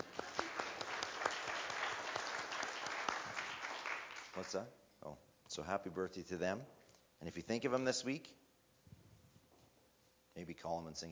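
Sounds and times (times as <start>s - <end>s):
audience clapping: 0.0s - 4.6s
speech: 4.4s - 8.4s, 10.4s - 11.1s.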